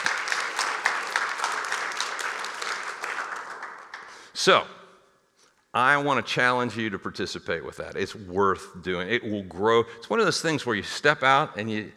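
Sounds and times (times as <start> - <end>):
audience applause: 0.0 - 4.2
speech: 4.4 - 4.8, 5.8 - 11.9.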